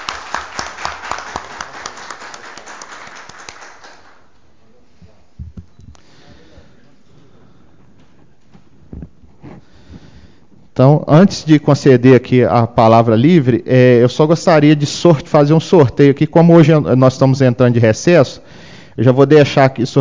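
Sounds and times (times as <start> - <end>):
audience applause: 0.0 - 4.3
speech: 10.8 - 20.0.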